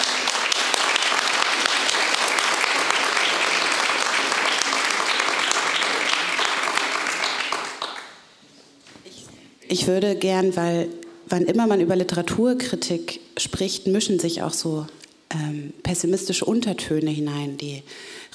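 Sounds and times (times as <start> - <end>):
audience applause: 0.0 - 8.2
speech: 9.7 - 18.3.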